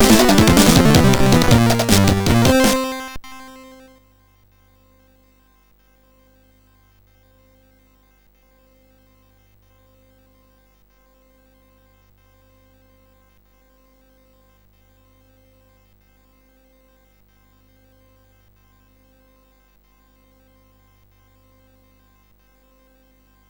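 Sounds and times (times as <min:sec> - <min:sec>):
MOS6581R4 SID chip music: 0:00.0 - 0:03.9.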